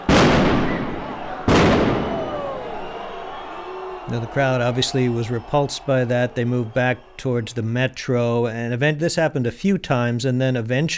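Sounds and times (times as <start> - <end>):
police firing tear gas at protesters: 0.0 - 3.6
speech: 4.1 - 10.9.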